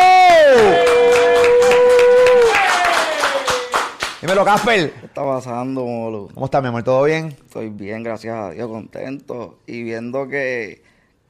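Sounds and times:
audience clapping and cheering: 0.0s - 4.9s
speech: 4.3s - 10.9s.

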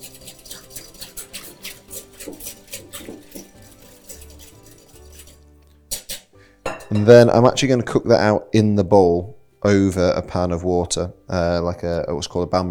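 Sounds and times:
whisking milk into egg yolks: 0.0s - 5.6s
speech: 6.9s - 12.6s.

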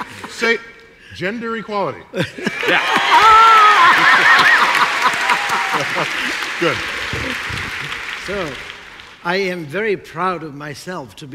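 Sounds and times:
laughter: 0.0s - 0.6s, 2.1s - 8.6s
speech: 0.4s - 4.6s, 5.8s - 11.3s
audience clapping: 2.5s - 9.6s.

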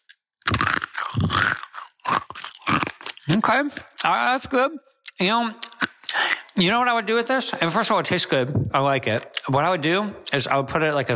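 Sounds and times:
crunching hard dry kibble pieces being chewed: 0.0s - 3.4s
speech: 3.3s - 5.6s, 6.6s - 11.1s.

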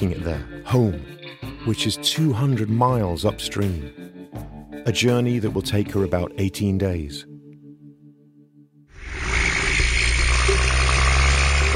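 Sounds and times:
speech: 0.0s - 4.2s, 4.8s - 7.3s
logging trucks rumbling, heard through water: 9.0s - 11.7s.

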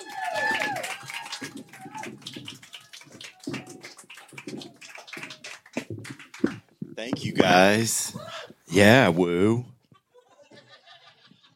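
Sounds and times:
whoops and a sharp whistle: 0.0s - 1.5s
audience applause: 0.0s - 6.8s
speech: 7.0s - 9.7s
laughter: 9.9s - 11.5s.

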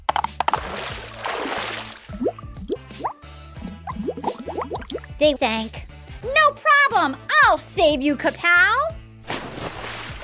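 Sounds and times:
water plops and drips: 0.0s - 5.2s
splashing of a metal character swimming across a pond: 0.1s - 2.9s, 3.6s - 5.2s
speech: 5.2s - 5.8s, 7.0s - 8.9s.

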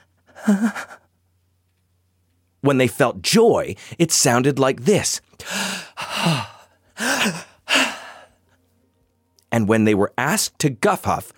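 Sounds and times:
speech: 0.5s - 1.0s, 2.6s - 7.5s, 9.6s - 11.3s
fearful breath: 5.4s - 8.4s.

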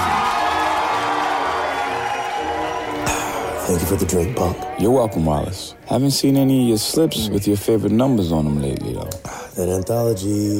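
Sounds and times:
tap-dance show audience applause and cheering for a performer: 0.0s - 5.6s
tap-dance show audience shouted voices: 0.0s - 5.6s
speech: 3.7s - 10.5s.

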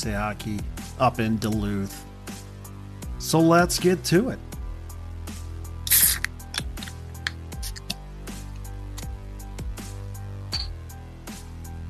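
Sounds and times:
speech: 0.0s - 2.1s, 3.2s - 4.5s
can of Moosehead Rattler beer cracked open: 5.8s - 8.0s.

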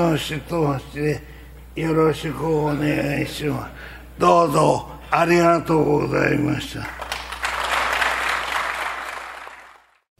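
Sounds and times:
speech: 0.0s - 7.0s
audience applause: 6.8s - 10.0s.

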